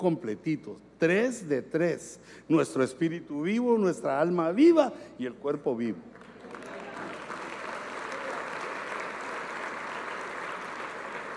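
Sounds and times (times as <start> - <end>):
speech: 0.0 - 6.2
audience applauding: 6.2 - 11.3.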